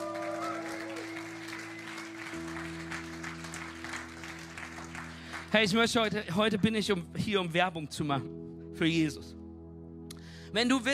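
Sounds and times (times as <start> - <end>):
audience applauding: 0.0 - 6.1
speech: 5.5 - 9.4, 10.5 - 10.9.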